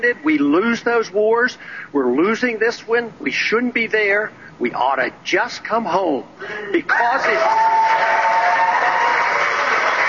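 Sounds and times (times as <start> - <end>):
speech: 0.0 - 8.3
crowd booing and cheering: 6.9 - 10.0.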